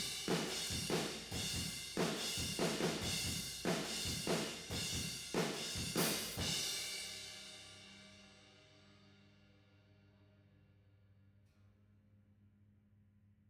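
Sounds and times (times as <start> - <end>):
tom drums: 0.0 - 7.0.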